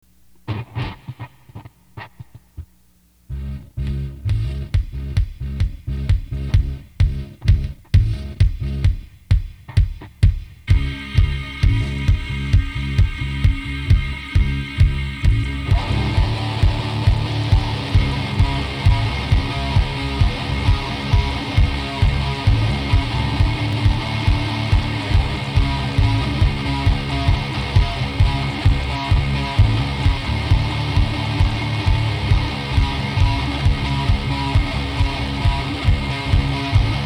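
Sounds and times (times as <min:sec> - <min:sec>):
funk music: 0:03.3 - 0:37.0.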